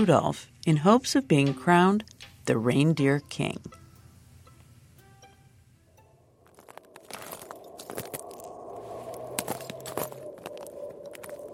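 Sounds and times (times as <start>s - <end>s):
speech: 0.0s - 3.8s
footsteps crunching across frozen lake ice: 6.4s - 11.5s
low rumble: 6.4s - 11.5s.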